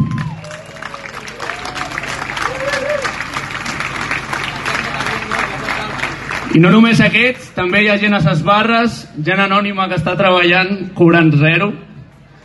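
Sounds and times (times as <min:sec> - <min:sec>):
crowd applause: 0:00.0 - 0:07.3
speech: 0:06.6 - 0:11.8.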